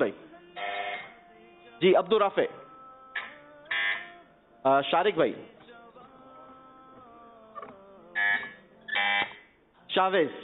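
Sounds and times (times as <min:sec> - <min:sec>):
speech: 0:00.0 - 0:00.2, 0:01.8 - 0:02.6, 0:04.6 - 0:05.6, 0:10.0 - 0:10.4
quiz buzzer being tested: 0:00.6 - 0:01.1, 0:03.2 - 0:04.1, 0:08.2 - 0:09.4.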